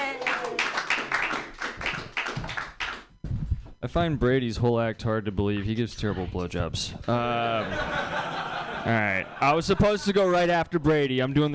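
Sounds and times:
comedy club audience applauding a comedian: 0.0 - 3.1
speech: 3.8 - 11.5
laughter: 7.1 - 10.6.

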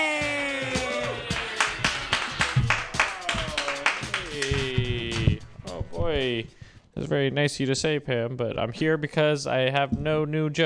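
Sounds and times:
people cheering: 0.0 - 5.3
small crowd clapping for the first comedian at a comedy workshop: 0.7 - 5.4
speech: 6.2 - 10.6.

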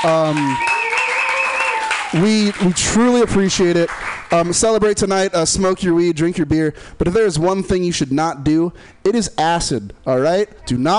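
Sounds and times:
speech: 0.0 - 0.8, 2.1 - 10.9
person whooping: 0.0 - 2.1
audience applauding: 0.0 - 4.5.

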